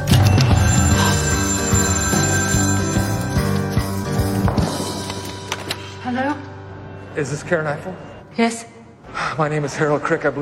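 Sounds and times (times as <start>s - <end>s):
telephone ringing with a bright metallic bell trill: 0.1s - 4.9s
speech: 7.2s - 8.8s, 9.4s - 10.4s.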